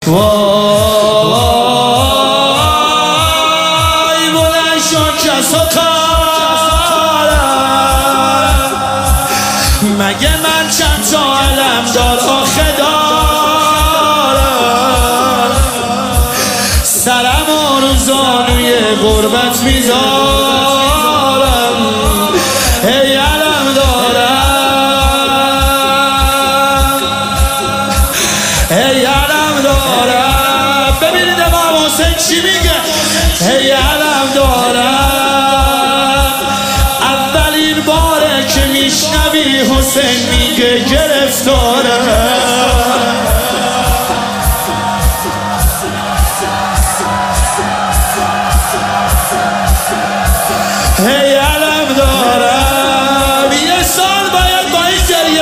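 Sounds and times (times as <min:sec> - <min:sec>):
devotional singing: 0:00.0 - 0:55.4.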